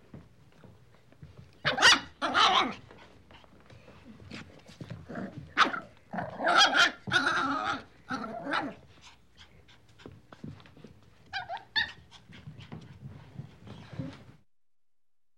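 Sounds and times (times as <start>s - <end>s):
puppy playfully barking, growling and yelping: 1.6s - 3.1s, 4.4s - 9.0s, 11.3s - 12.0s.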